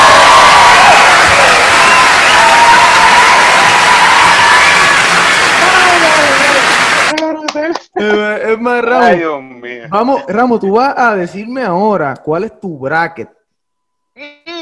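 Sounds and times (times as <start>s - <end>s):
applause and cheering: 0.0s - 7.9s
speech: 8.5s - 13.4s, 14.2s - 14.5s.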